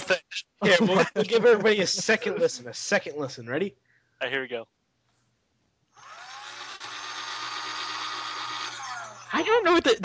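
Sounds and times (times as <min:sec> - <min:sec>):
laughter: 0:00.0 - 0:02.7
speech: 0:00.1 - 0:04.8, 0:09.3 - 0:10.0
power saw running: 0:06.0 - 0:09.3.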